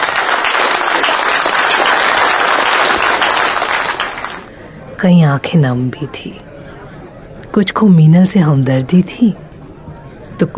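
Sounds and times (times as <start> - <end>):
thunderous audience applause: 0.0 - 4.5
speech: 5.0 - 6.5, 7.6 - 9.4, 10.4 - 10.5.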